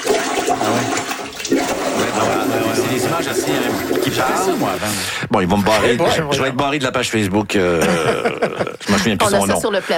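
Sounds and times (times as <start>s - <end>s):
water backflow gurgling up from a toilet bowl during heavy rain: 0.0s - 5.0s
speech: 3.2s - 9.9s
laughter: 7.6s - 9.9s.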